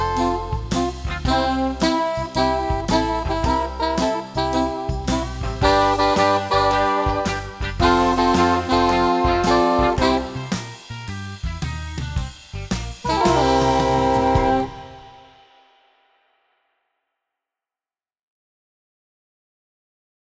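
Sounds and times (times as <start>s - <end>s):
blues music: 0.0s - 15.4s.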